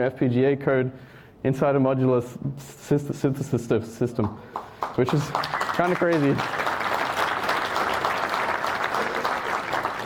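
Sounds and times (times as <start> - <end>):
speech: 0.0 - 6.7
audience clapping: 4.5 - 10.0.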